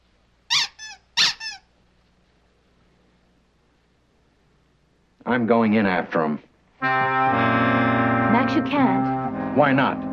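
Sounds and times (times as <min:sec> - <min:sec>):
rubber toy duck squeaking: 0:00.5 - 0:01.7
speech: 0:05.2 - 0:07.7, 0:08.5 - 0:10.1.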